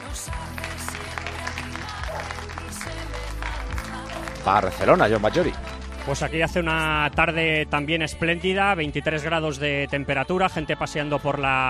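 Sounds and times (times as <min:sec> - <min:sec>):
people applauding from the street: 0:00.0 - 0:07.2
speech: 0:04.4 - 0:11.6.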